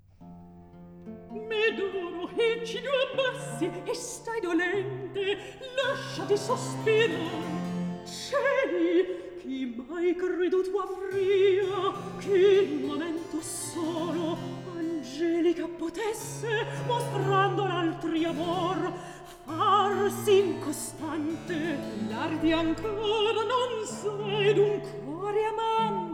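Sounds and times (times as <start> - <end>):
recitative singing: 1.3 - 26.1.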